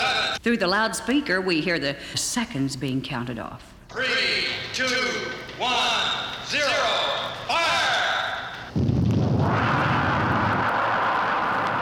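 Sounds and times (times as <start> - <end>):
speech: 0.4 - 7.8
rocket launch roar: 8.7 - 11.7.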